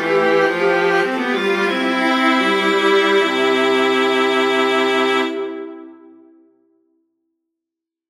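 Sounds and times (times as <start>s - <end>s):
viola duet playing a minuet in a major key: 0.0s - 6.1s.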